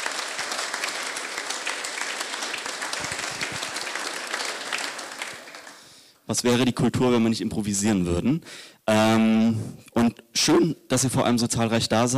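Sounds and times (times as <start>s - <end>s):
audience applause: 0.0s - 6.1s
speech: 6.3s - 12.1s.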